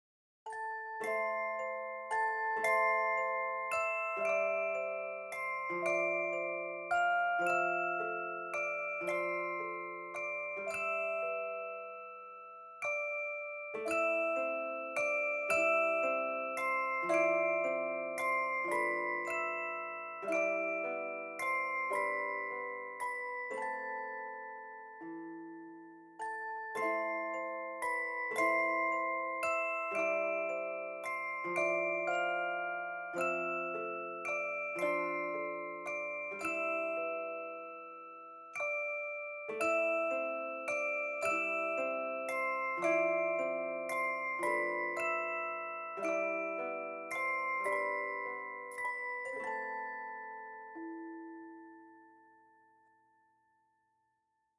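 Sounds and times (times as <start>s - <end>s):
music box: 0.5s - 53.9s.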